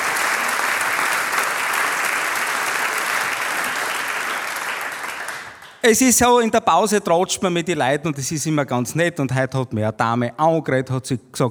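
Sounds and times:
audience applause: 0.0 - 5.9
speech: 5.8 - 11.5.

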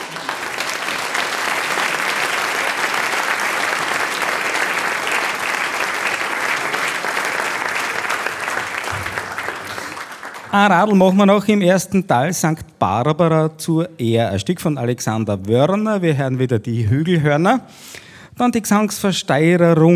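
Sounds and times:
audience applause: 0.0 - 11.0
speech: 10.5 - 19.9.

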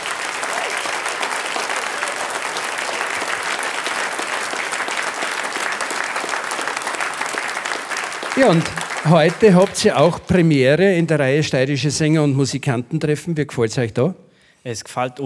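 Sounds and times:
strong audience applause: 0.0 - 10.5
speech: 8.4 - 15.2.

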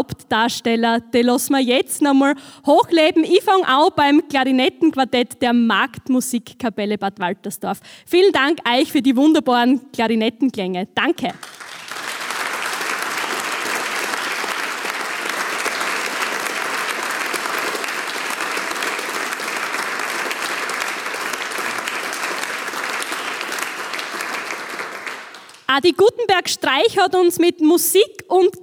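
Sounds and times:
speech: 0.0 - 11.6, 25.8 - 28.6
audience applause: 11.4 - 25.7.

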